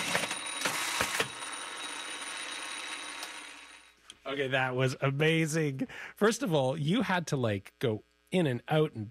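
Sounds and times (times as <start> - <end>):
industrial sewing machine stitching a buttonhole on denim jeans: 0.0 - 4.0
speech: 4.3 - 9.1.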